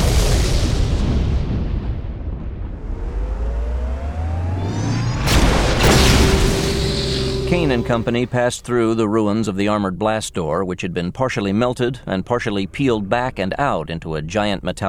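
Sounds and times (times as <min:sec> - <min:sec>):
explosion blast: 0:00.0 - 0:08.3
speech: 0:07.6 - 0:14.8.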